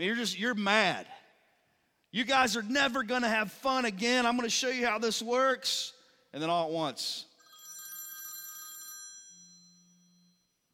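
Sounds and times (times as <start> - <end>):
speech: 0.0 - 1.2, 2.1 - 7.3
telephone electronic ring: 7.4 - 10.4
low steady tone: 9.3 - 10.7.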